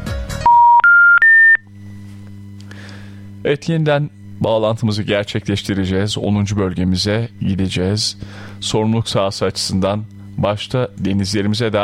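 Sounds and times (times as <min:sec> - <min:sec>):
telephone dialing tones: 0:00.5 - 0:01.6
faint low telephone line hum: 0:00.8 - 0:11.8
speech: 0:03.4 - 0:11.8.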